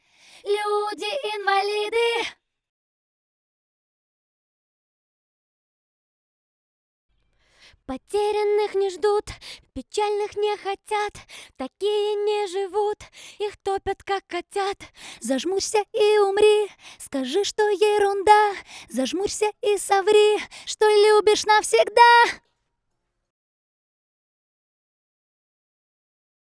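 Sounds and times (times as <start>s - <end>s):
dry acapella vocal: 0.4s - 2.4s, 7.9s - 22.4s.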